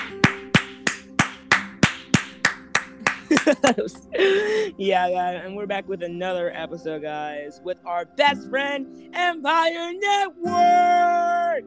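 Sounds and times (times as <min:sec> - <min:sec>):
hand claps: 0:00.0 - 0:04.0
laughter: 0:03.0 - 0:04.8
speech: 0:03.5 - 0:11.6.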